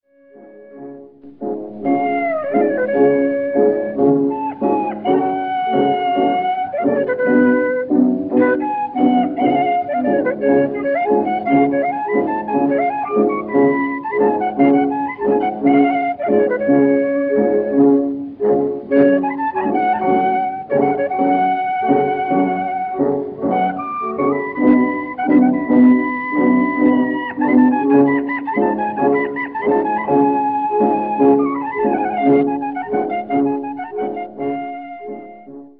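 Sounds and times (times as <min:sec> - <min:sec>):
klezmer music: 0:00.0 - 0:35.7.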